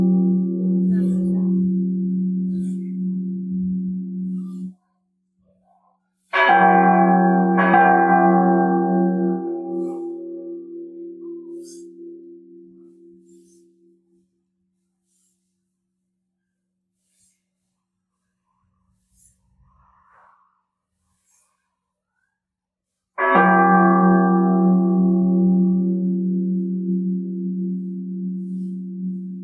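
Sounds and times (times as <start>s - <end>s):
bell: 0.0s - 4.8s, 6.3s - 13.8s, 23.2s - 29.4s.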